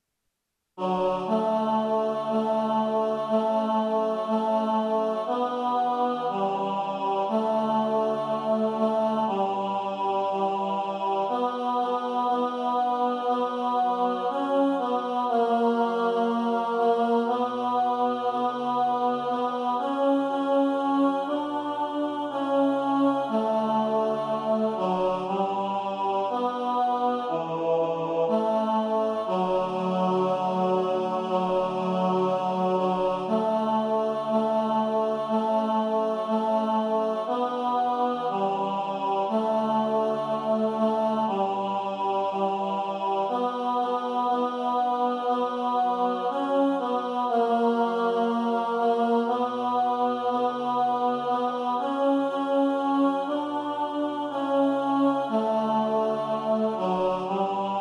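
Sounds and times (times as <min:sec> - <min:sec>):
tenor singing: 0:00.8 - 0:57.8.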